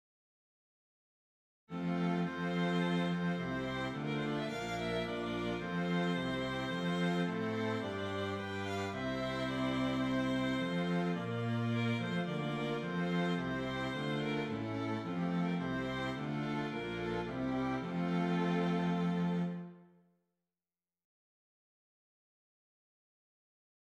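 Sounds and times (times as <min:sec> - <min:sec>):
strings: 0:01.7 - 0:19.8.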